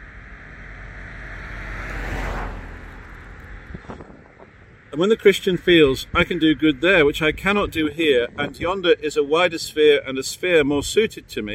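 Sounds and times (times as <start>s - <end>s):
car driving past: 0.0s - 5.0s
speech: 5.0s - 11.5s.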